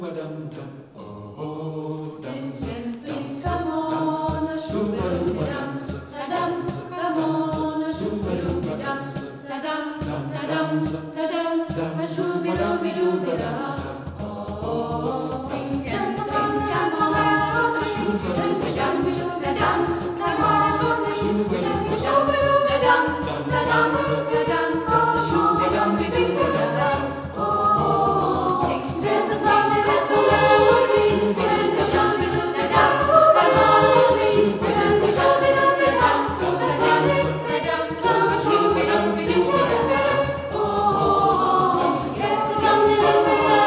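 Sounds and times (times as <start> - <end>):
swing jam session with singing: 2.3 - 43.6.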